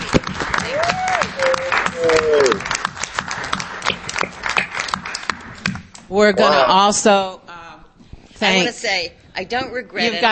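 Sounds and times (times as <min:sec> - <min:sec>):
round of applause: 0:00.0 - 0:05.8
speech: 0:06.1 - 0:07.4, 0:08.4 - 0:10.3.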